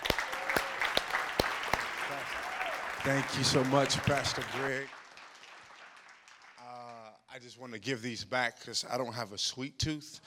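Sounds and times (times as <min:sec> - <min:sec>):
church congregation applauding to welcome a speaker: 0:00.0 - 0:07.2
speech: 0:03.0 - 0:05.0, 0:07.5 - 0:10.2.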